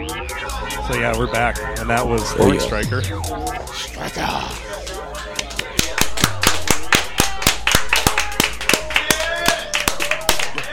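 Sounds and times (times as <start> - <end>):
speech: 0.9 - 4.6
hands clapping loudly into the microphone: 4.8 - 10.7.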